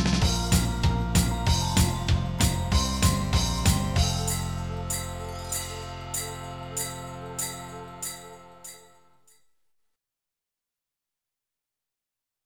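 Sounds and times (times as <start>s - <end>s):
jingle bell: 0.2s - 9.3s.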